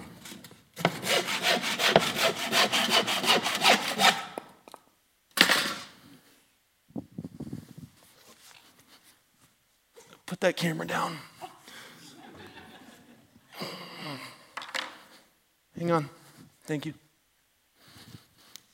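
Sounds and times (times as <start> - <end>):
hand saw cutting wood: 0.7 - 4.4
speech: 10.5 - 11.3, 15.8 - 17.0
laughter: 11.3 - 13.4.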